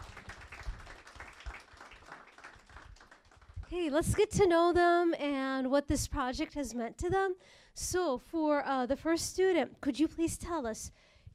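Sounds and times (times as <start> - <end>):
crowd applauding: 0.0 - 3.7
speech: 3.7 - 11.1.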